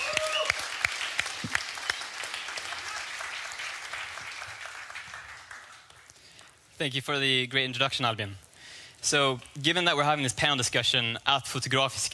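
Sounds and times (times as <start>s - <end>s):
audience applause: 0.0s - 6.5s
speech: 6.8s - 8.4s, 9.0s - 12.1s.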